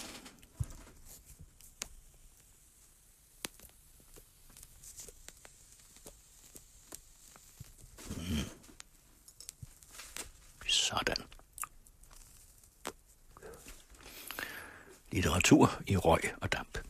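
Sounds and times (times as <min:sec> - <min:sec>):
matches struck to light a cigar: 0:00.0 - 0:10.6, 0:11.8 - 0:14.4
speech: 0:15.2 - 0:16.8.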